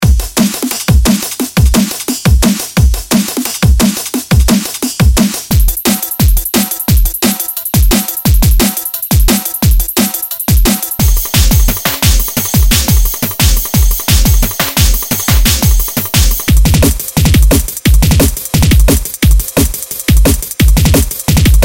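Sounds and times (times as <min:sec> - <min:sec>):
extreme drum and bass beats: 0:00.0 - 0:21.6.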